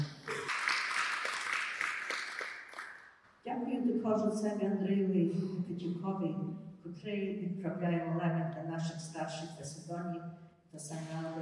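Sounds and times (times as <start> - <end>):
audience applause: 0.0 - 3.0
speech: 3.4 - 11.4.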